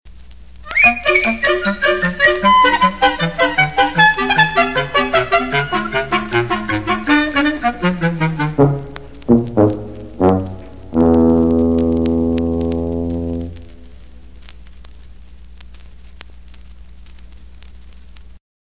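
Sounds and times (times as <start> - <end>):
cartoon music bridge: 0.6 - 13.8.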